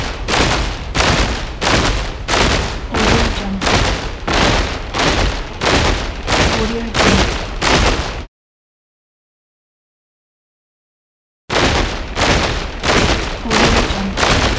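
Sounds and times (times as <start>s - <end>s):
soldiers marching: 0.0s - 8.3s, 11.6s - 14.5s.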